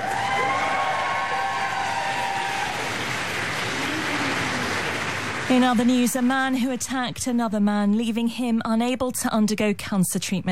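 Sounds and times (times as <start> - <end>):
Foreign Office staff cheering Zelensky arriving at 10 Downing Street: 0.0 - 6.7
speech: 5.5 - 10.4.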